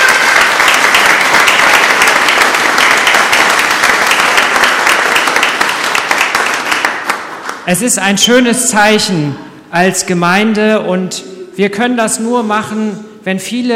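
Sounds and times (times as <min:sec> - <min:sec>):
applause: 0:00.0 - 0:07.8
speech: 0:07.7 - 0:13.7.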